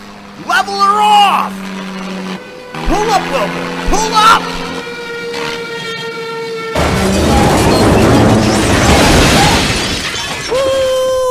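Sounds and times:
early airplane crashing: 0:00.0 - 0:11.0
speech: 0:00.4 - 0:01.9, 0:03.1 - 0:04.6.

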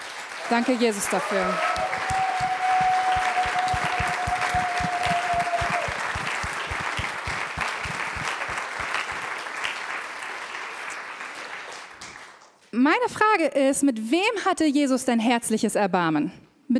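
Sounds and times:
audience applause: 0:00.0 - 0:12.6
speech: 0:00.5 - 0:02.2, 0:12.8 - 0:16.7.

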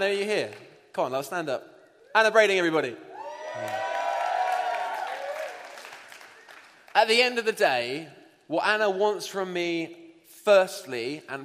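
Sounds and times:
speech: 0:00.0 - 0:03.8, 0:07.0 - 0:11.4
audience applause: 0:03.4 - 0:06.9.

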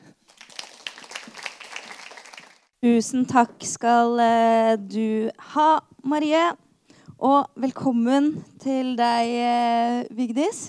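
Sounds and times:
audience applause: 0:00.3 - 0:02.7
speech: 0:02.8 - 0:06.6, 0:07.2 - 0:10.6.

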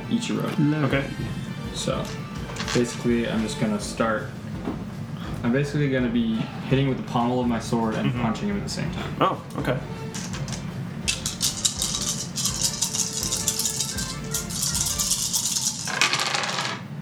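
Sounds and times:
speech: 0:00.1 - 0:04.9, 0:05.4 - 0:10.3
dice rolling on a hard tabletop: 0:01.8 - 0:03.5, 0:10.1 - 0:16.9.

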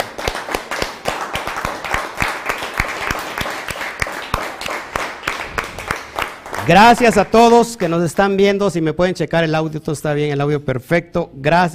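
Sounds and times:
applause: 0:00.0 - 0:08.0
speech: 0:06.7 - 0:11.7.

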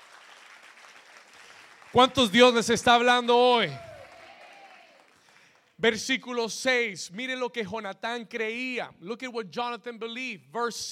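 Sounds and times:
audience applauding: 0:00.0 - 0:05.8
speech: 0:01.9 - 0:03.9, 0:05.8 - 0:10.9.

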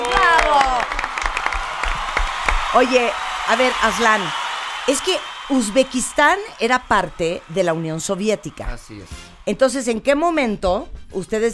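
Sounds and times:
applause: 0:00.0 - 0:09.3
speech: 0:02.8 - 0:11.5.

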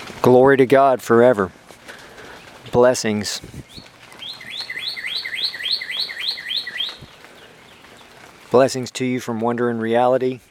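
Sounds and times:
speech: 0:00.2 - 0:01.6, 0:02.7 - 0:03.9, 0:08.5 - 0:10.4
bird singing: 0:03.6 - 0:08.3.

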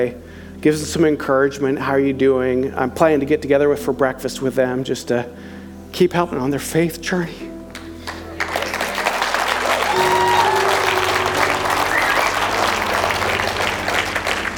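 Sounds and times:
speech: 0:00.0 - 0:07.5
audience clapping: 0:07.7 - 0:14.5.

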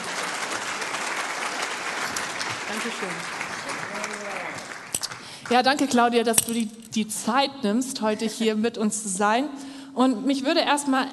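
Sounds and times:
audience applause: 0:00.0 - 0:05.6
speech: 0:02.7 - 0:03.4, 0:05.5 - 0:11.1.

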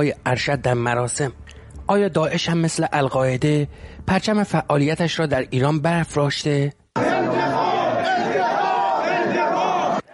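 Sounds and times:
speech: 0:00.0 - 0:07.2
crowd shouting for revenge: 0:07.0 - 0:10.1.

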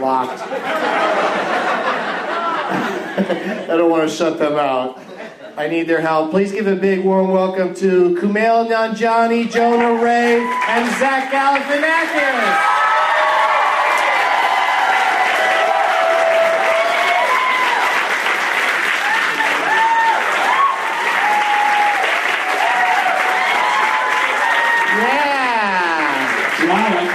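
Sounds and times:
laughter: 0:00.3 - 0:03.9, 0:05.0 - 0:05.6
speech: 0:03.2 - 0:12.8
crowd clapping: 0:09.6 - 0:27.1
crowd whoops and cheers: 0:10.2 - 0:11.0, 0:12.2 - 0:18.1, 0:19.0 - 0:26.3.

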